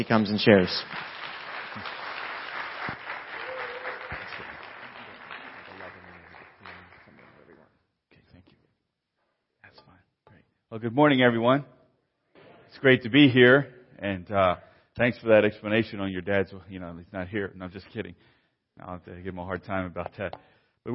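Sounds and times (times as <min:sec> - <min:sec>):
speech: 0:00.0 - 0:01.1, 0:10.8 - 0:11.8, 0:12.7 - 0:20.9
large indoor crowd applauding a guest speaker: 0:00.0 - 0:07.6.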